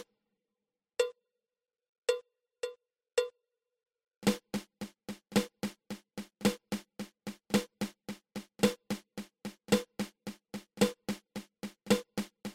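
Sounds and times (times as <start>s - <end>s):
flammed mill drum rudiment: 4.2s - 12.5s.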